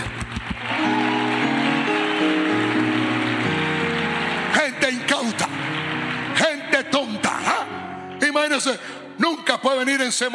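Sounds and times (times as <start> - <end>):
church audience applauding: 0.0 - 8.2
sustained organ or keyboard tones: 0.8 - 9.2
speech: 10.1 - 10.3.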